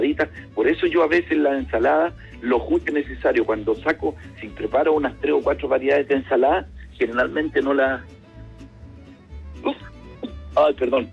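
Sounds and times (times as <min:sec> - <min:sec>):
speech: 0:00.2 - 0:08.2, 0:09.6 - 0:09.9, 0:10.6 - 0:11.1
sneeze: 0:09.6 - 0:10.4.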